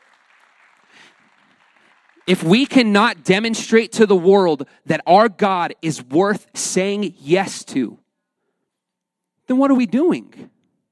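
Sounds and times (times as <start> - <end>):
audience clapping: 0.0 - 2.9
speech: 2.3 - 8.0, 9.5 - 10.5.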